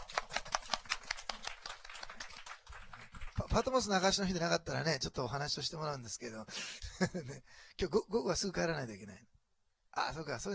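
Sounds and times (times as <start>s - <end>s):
welcoming applause from a group: 0.0s - 3.9s
speech: 3.6s - 9.3s, 10.0s - 10.5s.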